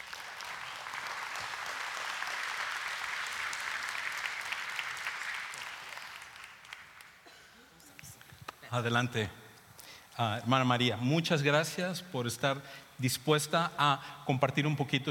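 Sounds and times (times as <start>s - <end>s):
audience applause: 0.0s - 7.2s
speech: 8.7s - 9.4s, 10.2s - 15.0s.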